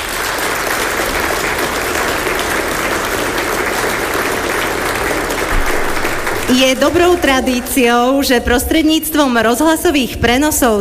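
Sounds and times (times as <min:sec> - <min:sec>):
audience applause: 0:00.0 - 0:08.1
speech: 0:06.5 - 0:10.7.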